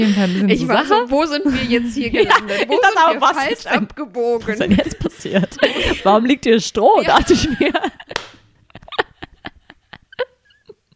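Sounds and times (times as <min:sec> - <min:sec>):
speech: 0:00.0 - 0:08.0
laughter: 0:01.5 - 0:03.8, 0:04.5 - 0:06.3, 0:07.0 - 0:10.9
sharp hand claps: 0:08.1 - 0:08.5.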